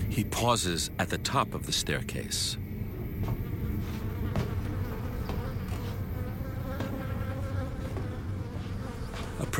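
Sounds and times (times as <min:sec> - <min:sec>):
speech: 0:00.2 - 0:03.4
flies buzzing around trash: 0:02.6 - 0:09.5.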